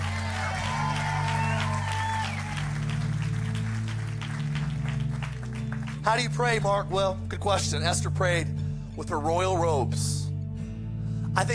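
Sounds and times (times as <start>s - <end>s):
audience shouting: 0.0s - 2.8s
audience hand clapping: 0.0s - 6.7s
speech: 6.0s - 10.2s, 11.4s - 11.5s.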